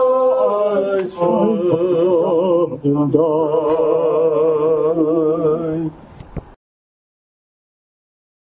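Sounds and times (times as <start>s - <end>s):
hymn: 0.0s - 6.0s.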